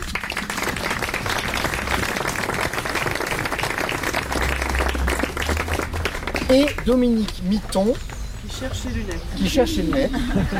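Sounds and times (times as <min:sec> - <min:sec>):
low rumble: 0:00.0 - 0:06.9
audience applauding: 0:00.0 - 0:08.1
speech: 0:06.5 - 0:10.5
laughter: 0:09.5 - 0:10.5.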